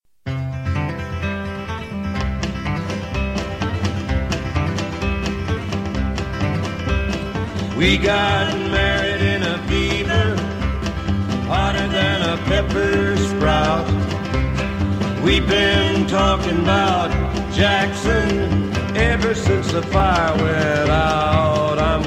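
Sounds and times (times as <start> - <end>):
cowboy music: 0.2 - 22.0.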